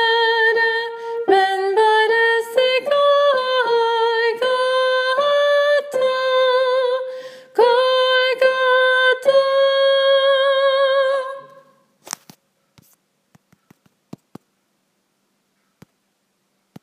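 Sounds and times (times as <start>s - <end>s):
soprano voice: 0.0s - 11.8s.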